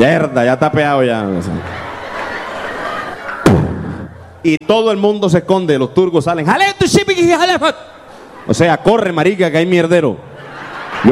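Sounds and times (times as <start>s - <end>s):
speech: 0.0s - 1.8s, 4.4s - 10.3s
laughter: 1.3s - 4.4s, 10.2s - 11.0s
bomb explosion sound effect from a 3D show: 3.4s - 4.2s.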